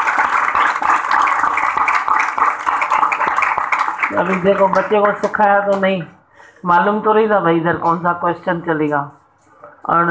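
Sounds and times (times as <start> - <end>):
audience clapping: 0.0 - 5.9
speech: 4.1 - 9.2, 9.9 - 10.0.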